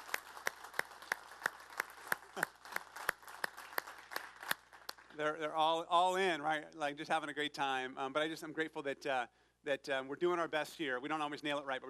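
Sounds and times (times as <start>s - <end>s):
audience applause: 0.0s - 5.2s
speech: 5.2s - 11.8s.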